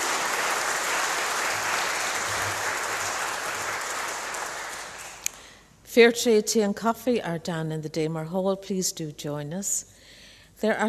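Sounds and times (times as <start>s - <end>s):
audience applause: 0.0s - 5.3s
speech: 6.0s - 10.0s, 10.6s - 10.8s.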